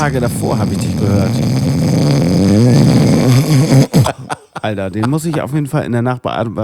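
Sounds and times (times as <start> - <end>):
voice imitating loud snoring: 0.0 - 4.4
speech: 0.0 - 6.6
laughter: 3.8 - 5.7.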